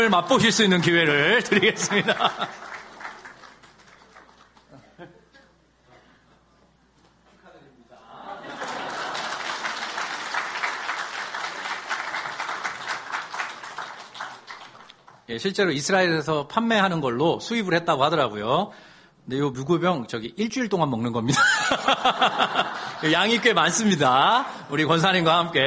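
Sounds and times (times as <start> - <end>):
speech: 0.0 - 2.7, 15.3 - 25.6
audience applause: 0.0 - 4.8, 8.4 - 15.2
laughter: 1.2 - 3.0, 4.7 - 5.7, 7.9 - 9.7, 21.3 - 25.0.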